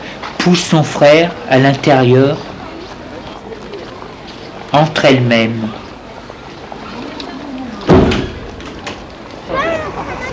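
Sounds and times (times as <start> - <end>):
speech: 0.4 - 2.5, 4.7 - 5.8
door closing shut: 7.8 - 9.1.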